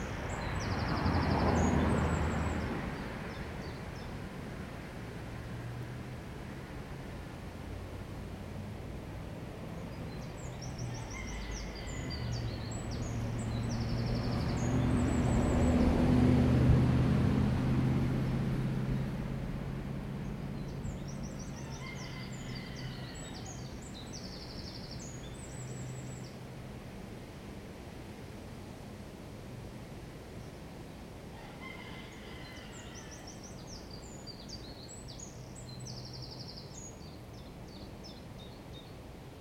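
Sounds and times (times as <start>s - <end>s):
garden ambience: 0.0s - 39.4s
loud motorbike: 13.0s - 22.1s.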